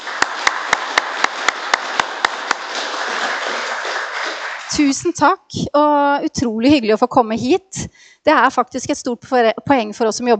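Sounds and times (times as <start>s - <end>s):
audience applause: 0.0s - 5.0s
speech: 4.7s - 10.3s.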